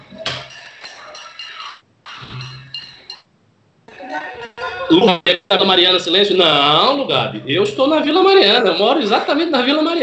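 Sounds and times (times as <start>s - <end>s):
pots and pans banged in street protest: 0.0s - 3.3s
speech: 4.9s - 10.0s.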